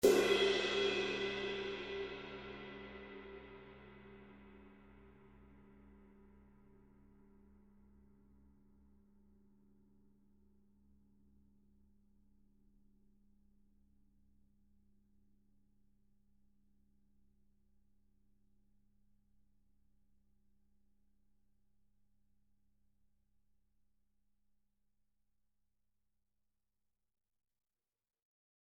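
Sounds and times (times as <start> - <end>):
Zildjian cymbal: 0.0 - 7.5.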